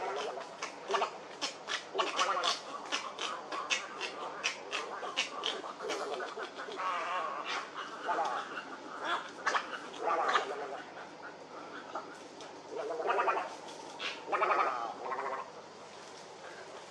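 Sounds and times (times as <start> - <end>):
herons croaking in a colony: 0.0 - 16.8.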